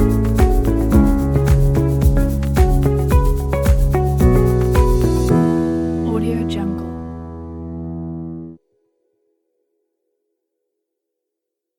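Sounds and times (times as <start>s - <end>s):
positive ambient music: 0.0s - 8.6s.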